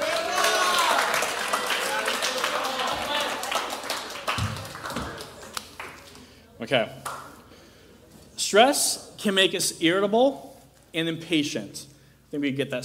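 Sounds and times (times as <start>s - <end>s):
audience applause: 0.0s - 6.2s
speech: 6.6s - 7.1s, 8.5s - 12.8s.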